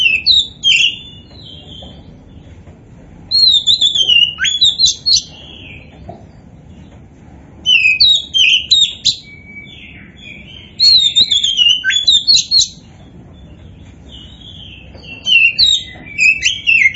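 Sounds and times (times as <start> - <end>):
Oriental magpie-robin song: 0.0 - 2.0, 3.3 - 5.9, 7.6 - 16.9.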